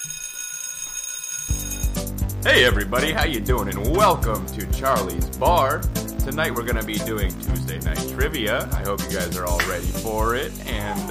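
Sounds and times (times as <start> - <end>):
bell ringing: 0.0 - 2.2
speech: 2.4 - 11.1.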